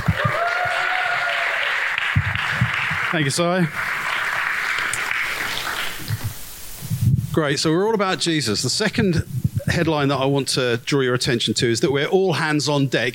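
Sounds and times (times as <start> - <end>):
audience applause: 0.0 - 6.4
speech: 3.1 - 4.0, 7.4 - 13.1.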